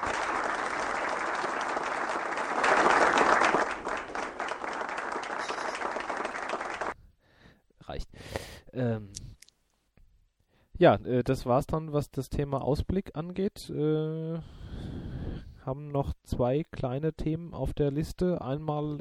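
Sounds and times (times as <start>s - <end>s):
audience clapping: 0.0s - 7.0s
speech: 10.8s - 14.6s, 15.7s - 18.9s.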